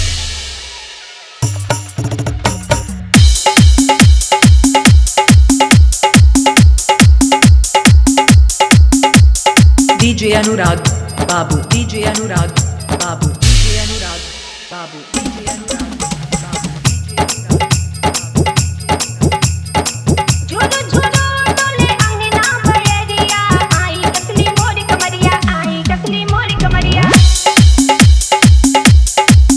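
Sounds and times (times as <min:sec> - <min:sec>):
old Bhojpuri hit song with dholak and bass: 0:00.0 - 0:29.5.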